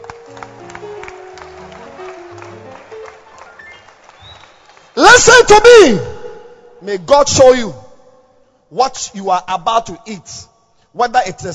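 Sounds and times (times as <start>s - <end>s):
sustained low musical tones: 0.0s - 4.2s
crowd clapping: 0.0s - 5.5s
speech: 5.2s - 6.1s, 6.8s - 7.8s, 8.7s - 11.5s.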